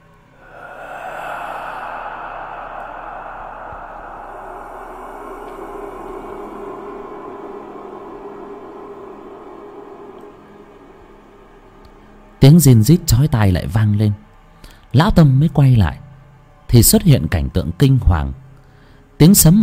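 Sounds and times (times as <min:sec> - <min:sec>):
very soft breathing: 0:00.3 - 0:11.3, 0:18.6 - 0:19.2
speech: 0:12.4 - 0:14.3, 0:14.9 - 0:16.0, 0:16.7 - 0:18.4, 0:19.2 - 0:19.6.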